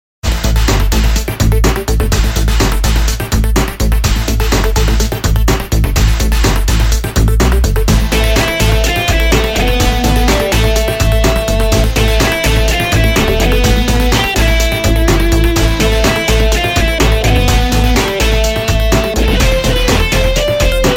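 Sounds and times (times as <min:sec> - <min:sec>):
music in a room: 0:00.2 - 0:20.9.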